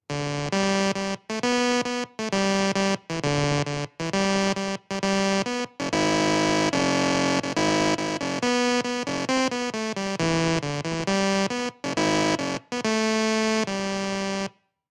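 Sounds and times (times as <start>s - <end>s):
music played on a computer: 0.1s - 14.5s.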